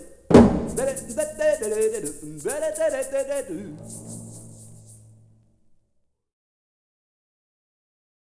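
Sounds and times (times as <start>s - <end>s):
mariachi orchestra playing: 0.3s - 5.3s.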